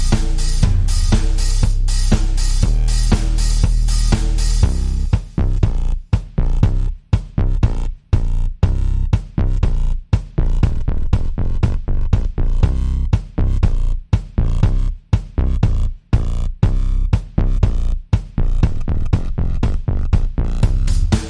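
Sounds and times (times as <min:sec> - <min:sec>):
drum and bass music: 0:00.0 - 0:21.2.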